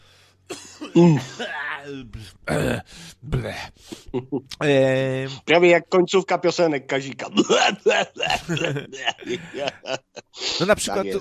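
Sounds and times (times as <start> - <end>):
person clearing throat: 0.5 - 3.0, 7.4 - 9.8
person coughing: 0.5 - 3.0, 7.3 - 9.9
speech: 1.0 - 11.1
laughter: 7.2 - 11.1.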